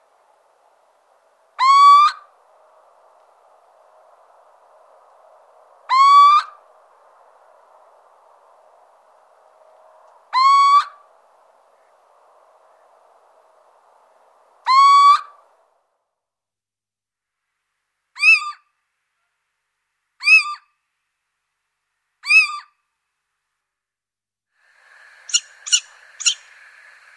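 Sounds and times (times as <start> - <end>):
little owl calling: 1.6 - 2.3, 5.9 - 6.6, 10.3 - 11.0, 14.6 - 15.4, 25.2 - 27.1.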